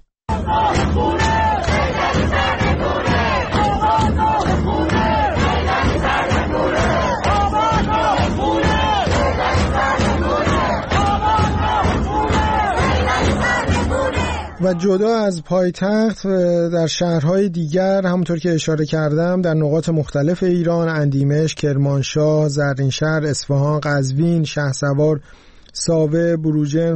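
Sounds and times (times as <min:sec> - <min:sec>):
crowd of protesters chanting slogans in Sadeghieh, Tehran: 0:00.3 - 0:15.0
speech: 0:14.7 - 0:26.9.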